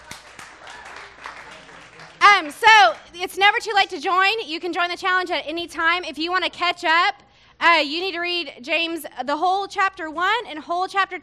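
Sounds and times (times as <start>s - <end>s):
audience applause: 0.0s - 3.1s
speech: 2.4s - 11.2s.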